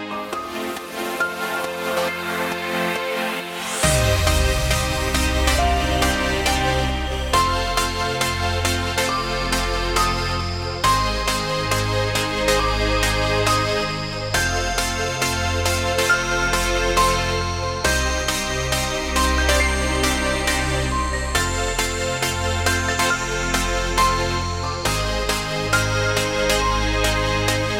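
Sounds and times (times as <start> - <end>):
melody: 0.2 - 27.7.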